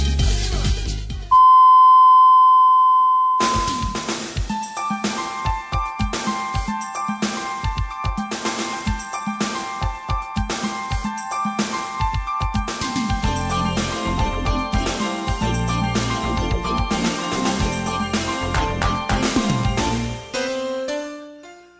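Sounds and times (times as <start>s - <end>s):
upbeat music with punchy rhythmic drum hits: 0.0s - 1.3s, 3.4s - 20.4s
radio time signal beep: 1.3s - 4.2s.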